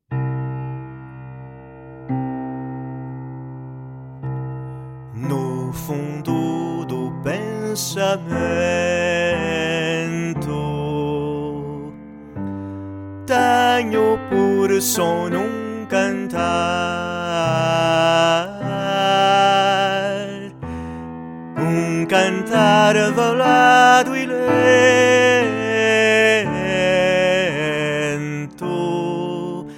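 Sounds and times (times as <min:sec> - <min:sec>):
slow veiled singing: 0:05.2 - 0:12.3, 0:13.2 - 0:20.9, 0:21.5 - 0:29.7.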